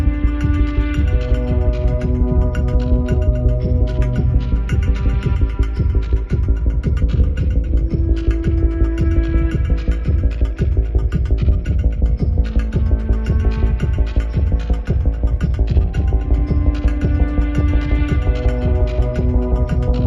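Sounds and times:
bass swells: 0:00.0 - 0:20.0
drums: 0:00.0 - 0:20.0.

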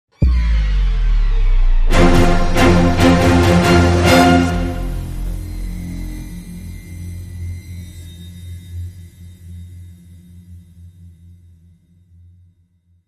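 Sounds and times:
dramatic sting: 0:00.2 - 0:08.4.

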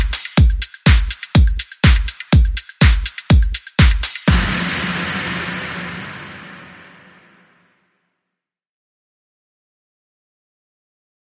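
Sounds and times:
funky beat: 0:00.0 - 0:04.8.

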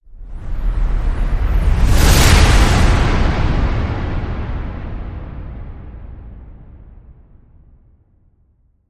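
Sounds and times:
whoosh: 0:00.2 - 0:07.1.

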